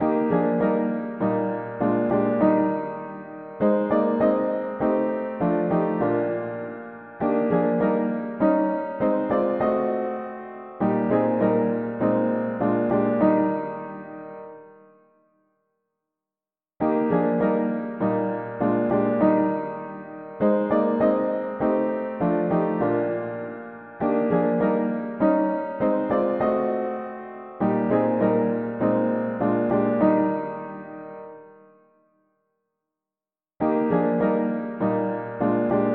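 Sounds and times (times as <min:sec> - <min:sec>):
mono piano: 0:00.0 - 0:15.5, 0:16.8 - 0:32.3, 0:33.6 - 0:35.9.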